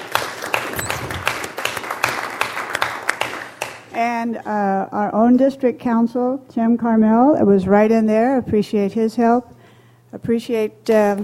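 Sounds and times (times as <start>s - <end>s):
audience applauding: 0.0s - 3.9s
speech: 4.0s - 11.2s.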